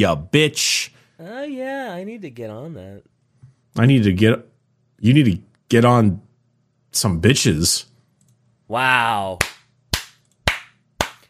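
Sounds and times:
speech: 0.0s - 3.1s, 3.8s - 6.2s, 6.9s - 7.9s, 8.7s - 9.5s
hand clapping: 9.4s - 11.2s.

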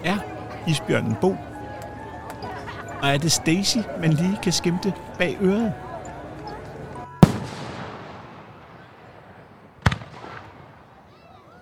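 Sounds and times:
speech: 0.0s - 1.5s, 3.0s - 5.8s
laughter: 2.1s - 4.0s
fireworks exploding: 7.2s - 11.0s.

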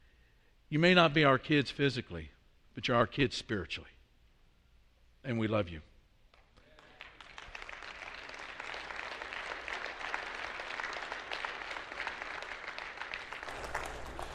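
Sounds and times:
speech: 0.7s - 4.0s, 5.2s - 5.9s
crowd clapping: 6.3s - 14.3s.

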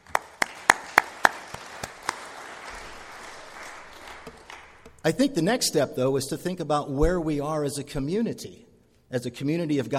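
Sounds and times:
hand claps: 0.0s - 5.3s
speech: 5.0s - 9.9s.

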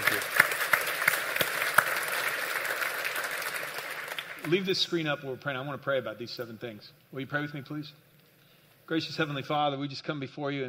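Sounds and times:
audience applause: 0.0s - 4.8s
speech: 4.5s - 8.1s, 8.9s - 10.6s.

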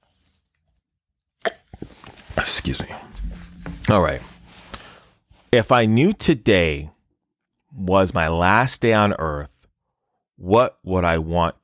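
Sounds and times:
faint low rustling: 2.2s - 5.0s
speech: 2.4s - 3.3s, 3.9s - 4.3s, 5.5s - 7.0s, 7.7s - 9.5s, 10.4s - 11.6s.

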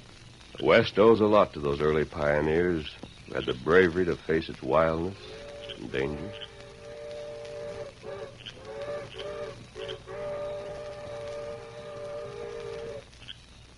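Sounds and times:
low rumbling noise: 0.0s - 13.7s
speech: 0.6s - 6.5s
distant train whistle: 5.2s - 13.1s.

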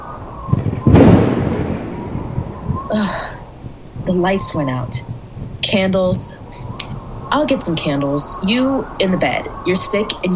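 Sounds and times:
thunderclap: 0.0s - 10.3s
speech: 4.1s - 5.1s, 5.7s - 6.4s, 7.3s - 10.3s.

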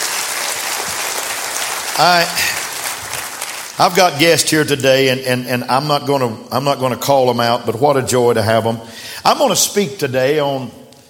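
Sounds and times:
church congregation clapping: 0.0s - 4.9s
speech: 2.0s - 2.6s, 3.8s - 10.8s.

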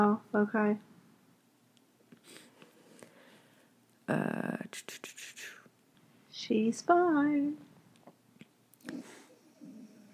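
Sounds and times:
speech: 0.0s - 0.9s, 4.1s - 5.6s, 6.4s - 7.7s, 8.9s - 9.2s
dog snoring: 8.9s - 10.1s.

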